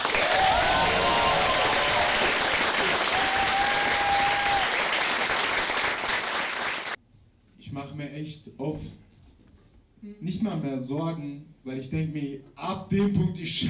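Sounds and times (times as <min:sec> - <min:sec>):
audience applause: 0:00.0 - 0:07.0
speech: 0:08.2 - 0:09.1, 0:10.0 - 0:13.6.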